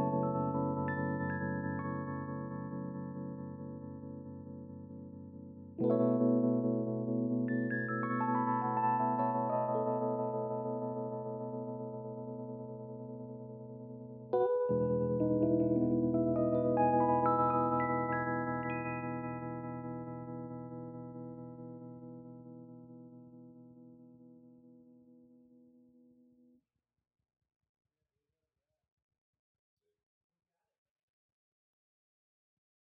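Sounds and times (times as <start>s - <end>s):
lush electric piano: 0.0s - 26.1s.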